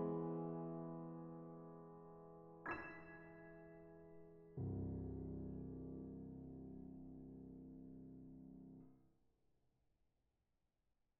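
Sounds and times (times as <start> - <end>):
Steinway piano improvisation: 0.0 - 8.8.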